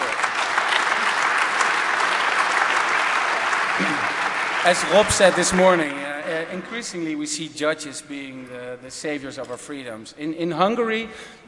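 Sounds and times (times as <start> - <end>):
audience applause: 0.0 - 6.8
speech: 4.6 - 11.4.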